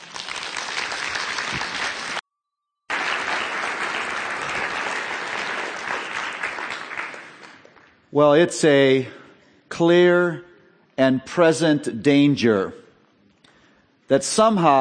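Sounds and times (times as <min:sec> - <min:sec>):
audience applause welcoming a speaker to the stage: 0:00.0 - 0:02.2, 0:02.9 - 0:07.9
speech: 0:08.1 - 0:09.2, 0:09.8 - 0:12.8, 0:14.1 - 0:14.8.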